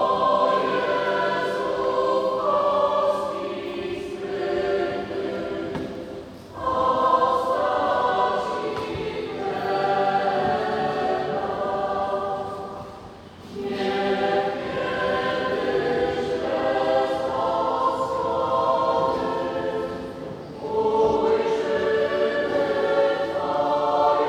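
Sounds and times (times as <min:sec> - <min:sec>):
parish choir singing: 0:00.0 - 0:24.2.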